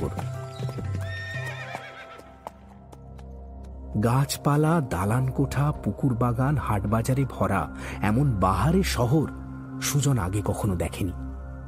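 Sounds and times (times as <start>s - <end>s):
speech: 0.0s - 0.3s, 4.0s - 11.2s
faint horse hoof clops: 0.0s - 3.8s
horse neighing sound effect: 1.0s - 2.4s.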